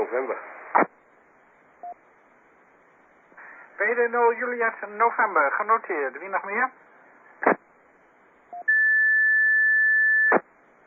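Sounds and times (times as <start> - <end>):
radio static hiss: 0.0 - 10.8
speech: 0.1 - 0.9, 3.9 - 7.5
1750 hertz radio tone beep: 8.6 - 10.4.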